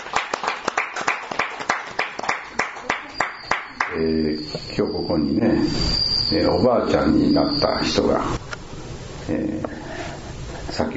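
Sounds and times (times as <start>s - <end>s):
audience applause and clapping: 0.0s - 4.0s
speech: 3.9s - 8.4s, 9.3s - 9.9s, 10.8s - 10.9s.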